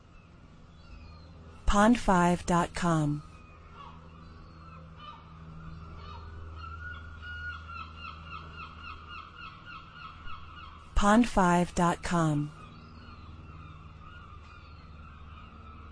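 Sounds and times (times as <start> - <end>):
speech: 1.7 - 3.3, 11.0 - 12.6
gulls calling: 3.2 - 15.9.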